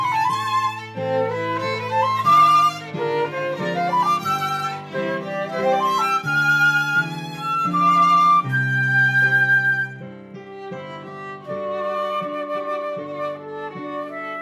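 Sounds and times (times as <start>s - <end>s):
viola playing in C minor: 0.0s - 14.3s.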